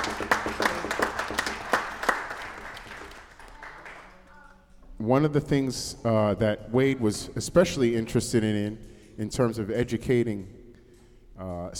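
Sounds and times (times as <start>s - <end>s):
audience applause: 0.0s - 4.3s
speech: 5.1s - 10.6s, 11.4s - 11.7s.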